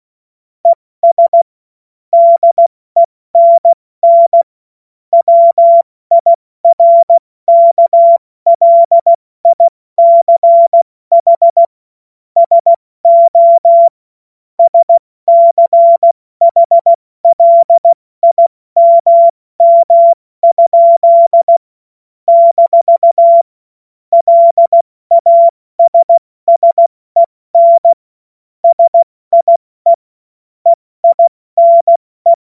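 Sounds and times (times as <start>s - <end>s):
CW Morse code beeps: 0.7s - 1.5s, 2.2s - 2.7s, 3.4s - 4.5s, 5.2s - 11.7s, 12.4s - 14.0s, 14.6s - 21.6s, 22.3s - 23.5s, 24.1s - 28.0s, 28.6s - 30.0s, 30.7s - 32.4s.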